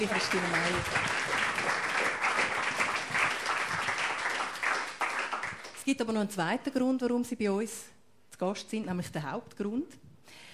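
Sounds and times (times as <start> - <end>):
speech: 0.0 - 1.4, 5.9 - 10.5
audience applause: 0.0 - 5.8.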